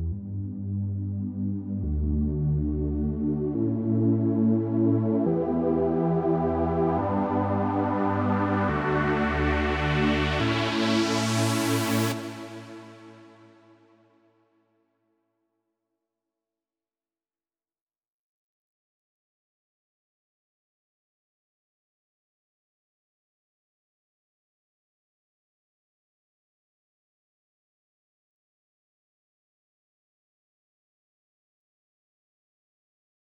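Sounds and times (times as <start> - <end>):
synth pad: 0.1 - 13.3.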